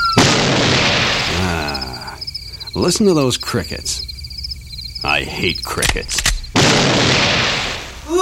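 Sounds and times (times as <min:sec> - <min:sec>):
shotgun blast: 0:00.2 - 0:01.5, 0:06.1 - 0:08.1
speech: 0:02.8 - 0:04.1, 0:05.1 - 0:06.2.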